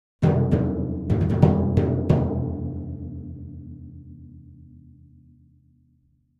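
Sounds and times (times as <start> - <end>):
timpani final hits by hand: 0.2 - 3.8.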